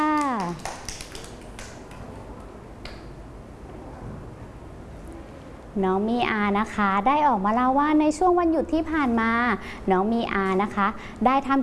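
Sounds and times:
small group of children clapping hands: 0.0 - 2.2
speech: 5.8 - 11.6.

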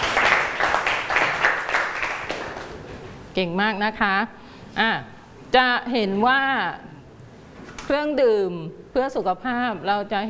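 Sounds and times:
group of people applauding: 0.0 - 2.8
speech: 3.4 - 6.9, 7.9 - 10.2.

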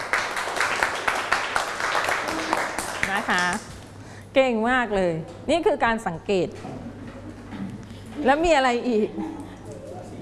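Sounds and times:
children in a classroom clapping for a group of classmates: 0.0 - 3.8
speech: 3.2 - 3.7, 4.4 - 6.7, 8.2 - 9.3.

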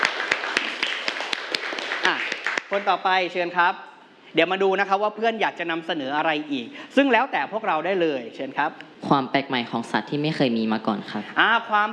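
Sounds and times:
classroom applause for a student: 0.0 - 3.0
speech: 2.7 - 11.9.

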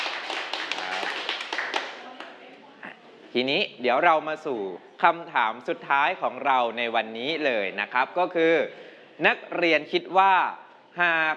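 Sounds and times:
students clapping for a classmate: 0.0 - 2.4
speech: 3.3 - 11.3.

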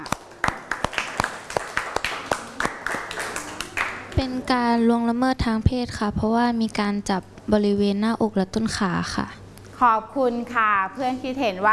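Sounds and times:
classroom applause: 0.0 - 4.2
speech: 4.2 - 11.7.

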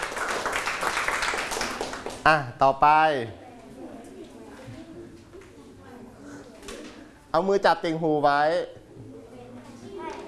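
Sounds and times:
classroom children clapping for a classmate: 0.0 - 2.4
speech: 2.3 - 3.4, 7.3 - 9.1.

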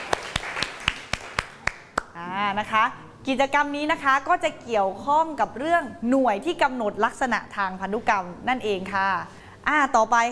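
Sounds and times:
classmates in a classroom clapping in unison: 0.0 - 2.2
speech: 2.5 - 10.3.

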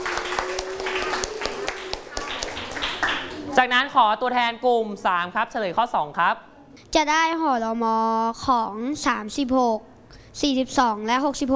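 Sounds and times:
classroom clapping: 0.0 - 3.8
speech: 3.6 - 11.5.

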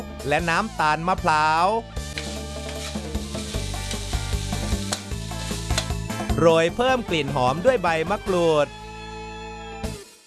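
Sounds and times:
speech: 0.2 - 2.0, 6.4 - 8.8
herbs stir-frying in oil: 2.0 - 6.4.

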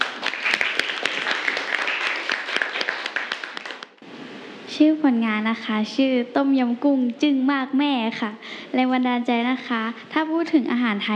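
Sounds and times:
classroom applause for a student presenter: 0.0 - 4.0
speech: 4.8 - 11.1.

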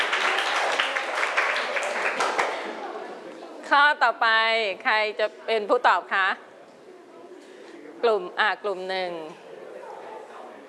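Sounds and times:
children clapping hands: 0.0 - 2.7
speech: 3.7 - 6.5, 8.0 - 9.4.

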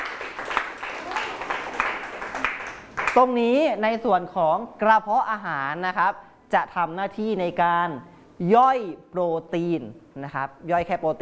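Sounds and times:
classroom applause: 0.0 - 3.2
speech: 3.2 - 11.1.

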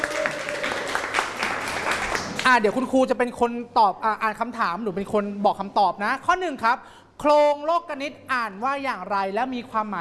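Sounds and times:
students clapping: 0.0 - 2.5
speech: 2.5 - 9.9.

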